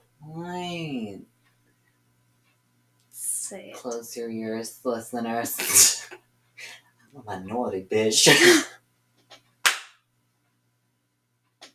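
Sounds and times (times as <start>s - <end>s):
speech: 3.5s - 6.2s, 7.1s - 8.8s
loud hand clap: 9.3s - 10.0s.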